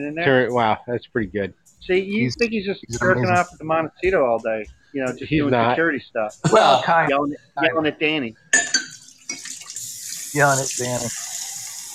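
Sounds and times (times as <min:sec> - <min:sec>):
speech: 0:00.0 - 0:08.7, 0:10.3 - 0:11.3
cup rinsed under tap splashing and clattering: 0:08.6 - 0:09.9
water running from a tap: 0:08.8 - 0:11.9.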